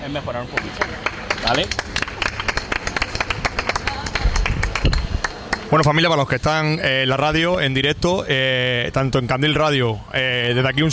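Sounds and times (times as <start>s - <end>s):
speech: 0.0s - 2.1s, 5.7s - 10.9s
audience applause: 0.5s - 5.8s.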